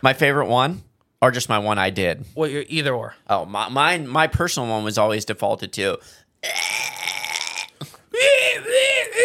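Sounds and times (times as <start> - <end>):
speech: 0.0 - 6.8
person vocally imitating a squonk hunting call: 6.4 - 9.2.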